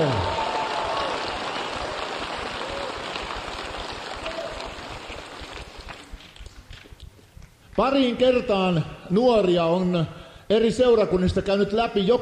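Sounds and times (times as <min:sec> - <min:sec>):
audience applause: 0:00.0 - 0:06.8
speech: 0:07.8 - 0:12.2.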